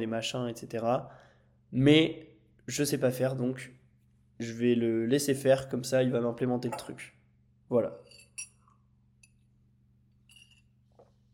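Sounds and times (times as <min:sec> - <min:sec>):
speech: 0:00.0 - 0:03.8, 0:04.4 - 0:08.5
glass clinking while drinking: 0:08.0 - 0:09.4, 0:10.2 - 0:10.7.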